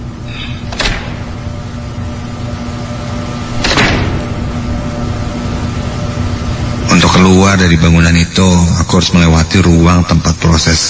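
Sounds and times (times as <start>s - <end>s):
steady low electrical hum: 0.0s - 10.8s
room door closing: 0.4s - 1.4s, 3.6s - 4.5s
speech: 7.2s - 10.8s.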